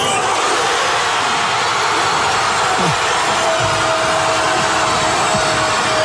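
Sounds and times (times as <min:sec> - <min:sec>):
crowd erupting in joy at a goal: 0:00.0 - 0:06.0.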